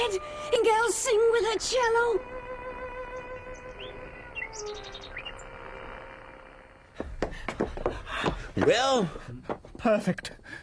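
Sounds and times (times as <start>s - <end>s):
speech: 0.1s - 2.4s, 8.2s - 10.6s
bird singing over a radio set: 3.2s - 5.6s.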